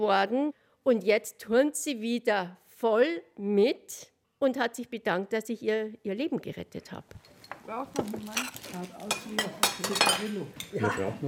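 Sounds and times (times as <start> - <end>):
speech: 0.0 - 11.2
dishes and cutlery clinking at a long table: 7.2 - 11.0.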